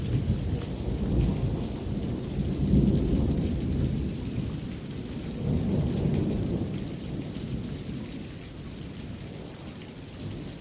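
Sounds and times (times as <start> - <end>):
deep rolling thunder: 0.0 - 8.4
steady rain: 0.0 - 10.5.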